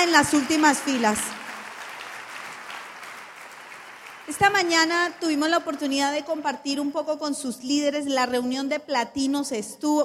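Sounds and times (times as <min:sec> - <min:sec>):
speech: 0:00.0 - 0:01.4, 0:04.3 - 0:10.0
audience applause: 0:00.0 - 0:06.2.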